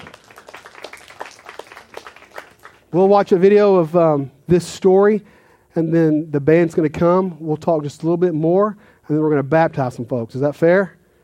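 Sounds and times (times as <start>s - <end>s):
audience applause: 0.0s - 2.8s
speech: 2.9s - 11.0s.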